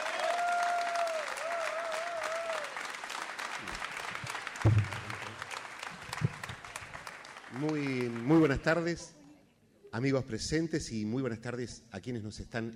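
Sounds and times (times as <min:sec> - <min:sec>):
loud audience applause: 0:00.0 - 0:09.0
speech: 0:07.6 - 0:09.2, 0:10.0 - 0:12.7.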